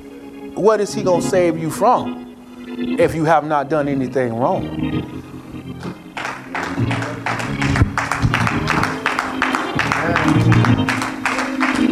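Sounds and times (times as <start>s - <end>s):
speech: 0.6s - 2.2s, 2.8s - 6.0s
audience clapping: 5.8s - 11.9s.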